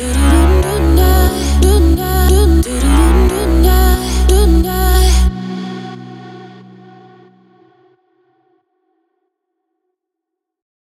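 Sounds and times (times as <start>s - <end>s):
synthwave music: 0.0s - 7.2s.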